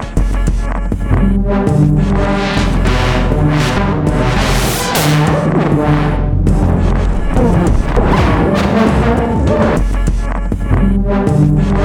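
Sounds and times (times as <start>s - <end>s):
lolicore rave hits: 0.2s - 11.8s.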